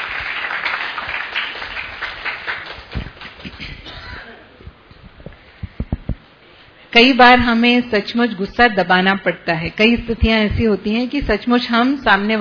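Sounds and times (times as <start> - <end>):
audience applause: 0.0 - 3.8
speech: 7.0 - 12.3.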